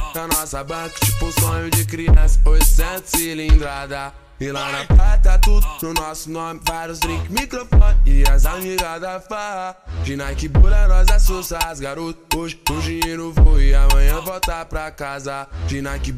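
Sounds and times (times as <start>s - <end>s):
deep bass: 1.0s - 3.0s, 4.9s - 5.7s, 7.1s - 8.6s, 9.9s - 11.4s, 12.7s - 14.2s, 15.6s - 16.1s.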